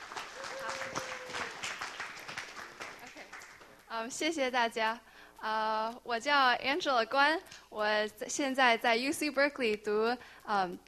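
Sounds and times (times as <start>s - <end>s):
audience applause: 0.0s - 3.8s
speech: 4.0s - 10.8s.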